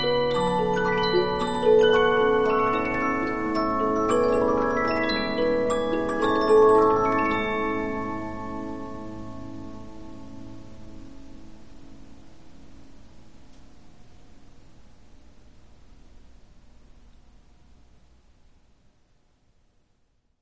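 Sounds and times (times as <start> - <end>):
Polyphon 15-inch disc music box playing: 0.0 - 9.2.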